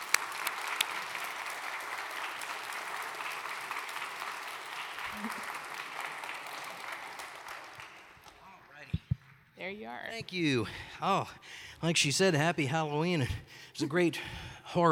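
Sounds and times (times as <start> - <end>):
audience applause welcoming a touring theatre organist: 0.0 - 8.9
speech: 9.6 - 14.8.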